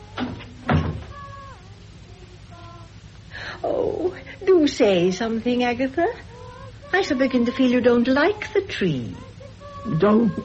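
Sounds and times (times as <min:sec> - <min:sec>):
door shutting with soft thuds: 0:00.2 - 0:01.2
speech: 0:03.6 - 0:06.3, 0:06.9 - 0:10.4.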